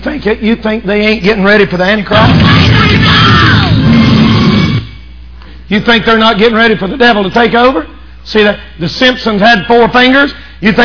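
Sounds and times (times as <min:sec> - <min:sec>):
speech: 0:00.0 - 0:03.6, 0:05.7 - 0:10.8
large crowd cheering and yelling: 0:02.2 - 0:04.9.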